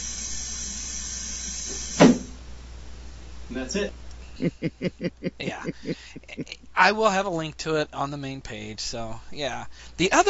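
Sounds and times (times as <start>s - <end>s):
automatic door running with a faint hiss: 0.0s - 2.4s
automatic door shutting with a dull thud: 2.0s - 2.3s
speech: 3.5s - 10.2s
laughter: 4.4s - 6.6s.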